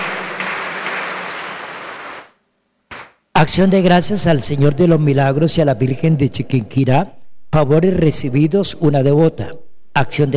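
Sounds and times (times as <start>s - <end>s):
applause: 0.0s - 3.2s
speech: 3.4s - 10.3s.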